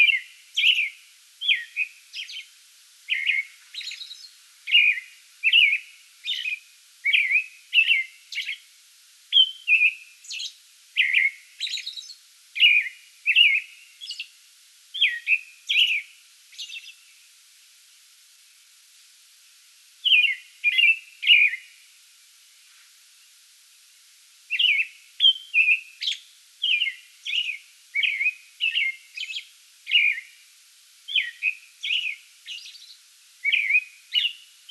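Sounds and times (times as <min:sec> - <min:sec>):
American robin whistled caroling: 0:00.0 - 0:02.5, 0:03.1 - 0:08.6, 0:09.3 - 0:14.3, 0:15.0 - 0:17.0, 0:20.0 - 0:21.7, 0:24.5 - 0:30.3, 0:31.1 - 0:34.6.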